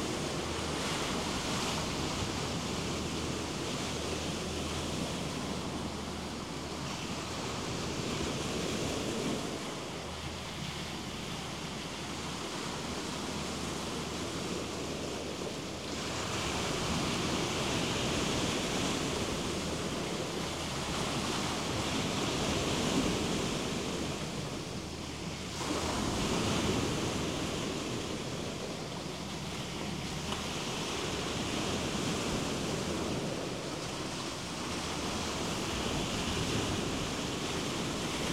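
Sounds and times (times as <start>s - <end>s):
cicada: 0.0s - 38.3s.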